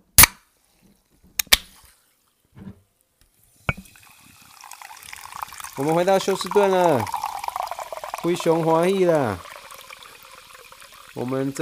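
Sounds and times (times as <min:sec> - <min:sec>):
bottle or can opening clicks and pops: 0:01.4 - 0:01.7, 0:03.7 - 0:03.9
sparkling water fizzing: 0:03.7 - 0:11.6
speech: 0:05.8 - 0:07.2, 0:08.2 - 0:09.5, 0:11.2 - 0:11.6.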